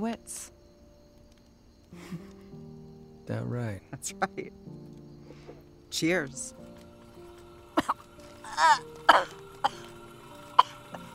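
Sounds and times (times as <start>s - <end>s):
speech: 0.0s - 0.6s, 3.3s - 4.8s, 5.9s - 6.6s, 8.6s - 9.4s
person coughing after a sip of water: 8.6s - 9.8s.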